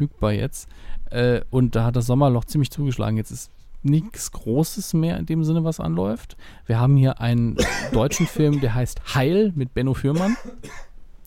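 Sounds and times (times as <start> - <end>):
speech: 0.0 - 10.9
short husky cough: 7.6 - 8.7, 10.2 - 10.9.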